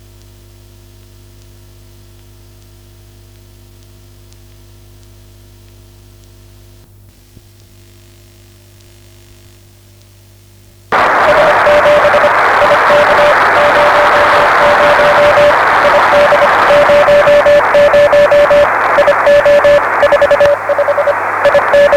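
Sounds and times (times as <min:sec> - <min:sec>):
beacon signal: 0:11.0 - 0:21.9.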